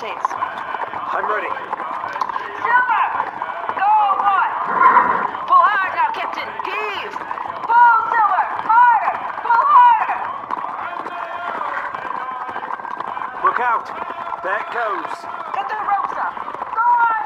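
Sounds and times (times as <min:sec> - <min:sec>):
speech: 0:00.0 - 0:00.6, 0:01.2 - 0:01.8, 0:13.8 - 0:15.4
horse hooves galloping in a radio drama: 0:00.0 - 0:17.2
loud shouting voices: 0:00.0 - 0:17.2.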